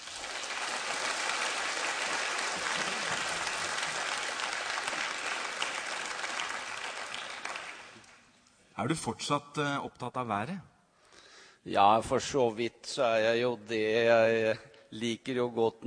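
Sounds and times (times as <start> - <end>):
audience applause: 0.0 - 8.2
speech: 8.8 - 10.7, 11.6 - 15.8.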